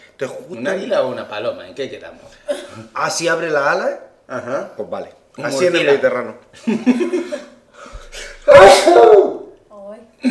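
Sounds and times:
speech: 0.2s - 9.4s
laughter: 6.6s - 7.8s
person sneezing: 8.1s - 9.3s.

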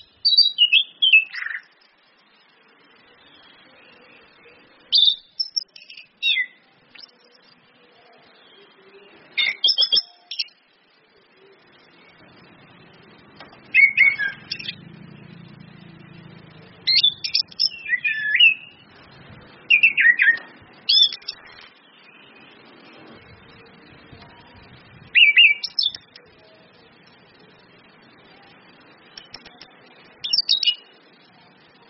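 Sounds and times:
orange-headed thrush singing: 0.0s - 1.8s, 2.9s - 7.5s, 8.3s - 10.7s, 11.3s - 19.0s, 19.6s - 24.5s, 25.1s - 27.2s, 28.7s - 30.9s
low engine hum: 14.4s - 17.4s.

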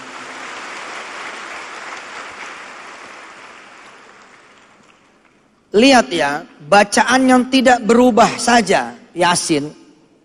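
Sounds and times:
audience applause at a spiritual gathering in Malang: 0.0s - 5.2s
speech: 5.7s - 9.8s.

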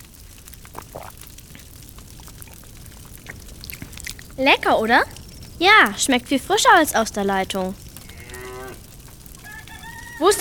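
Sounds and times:
drinking water from a drinking horn: 0.4s - 4.4s
speech: 4.4s - 7.8s, 10.2s - 10.3s.

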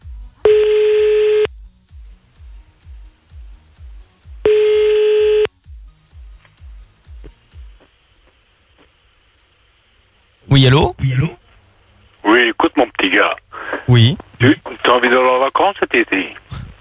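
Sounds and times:
low thumping beat: 0.0s - 9.0s
telephone ringback tone during a redial: 0.4s - 1.5s, 4.5s - 5.5s
speech: 10.6s - 11.4s, 13.2s - 16.4s.

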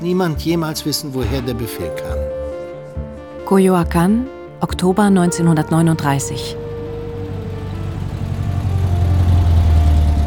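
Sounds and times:
speech: 0.0s - 2.4s, 3.5s - 6.6s
car engine rumbling as the car parks: 4.3s - 10.2s.

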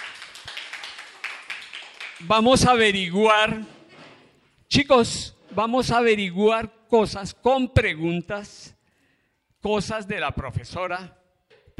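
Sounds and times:
group of children clapping: 0.0s - 2.6s
speech: 2.2s - 3.8s, 4.7s - 8.6s, 9.6s - 11.2s.

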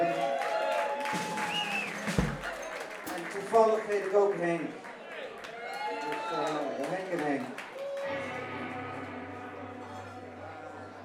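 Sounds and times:
audience applause: 0.0s - 11.0s
speech: 4.0s - 4.9s, 6.3s - 8.2s.

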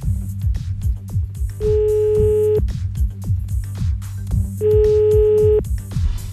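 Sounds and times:
soft rhythmic thumps: 0.0s - 6.2s
low hum: 1.6s - 2.6s, 4.6s - 5.6s
telephone ringing tones: 1.6s - 2.6s, 4.6s - 5.6s.

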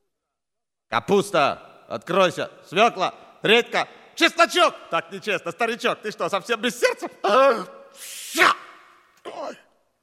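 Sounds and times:
speech: 0.9s - 8.6s
sneeze: 8.0s - 9.6s.

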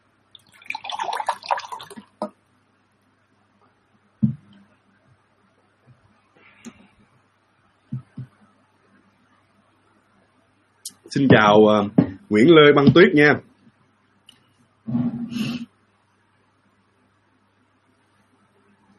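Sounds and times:
person drinking a sip of water: 0.4s - 2.1s
speech: 11.1s - 13.5s.

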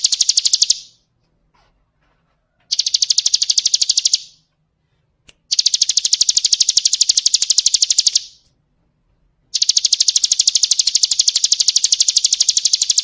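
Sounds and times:
bird singing rapid high trills: 2.7s - 4.4s, 5.5s - 8.4s, 9.6s - 13.0s.

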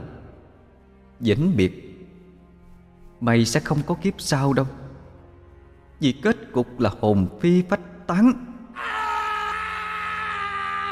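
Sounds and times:
speech: 1.2s - 1.9s, 3.2s - 4.8s, 6.0s - 9.0s
anguished wailing scream: 8.8s - 10.8s.

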